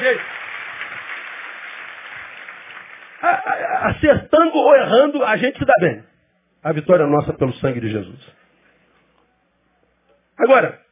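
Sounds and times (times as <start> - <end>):
applause: 0.0 - 3.6
speech: 3.8 - 8.4, 10.4 - 10.8.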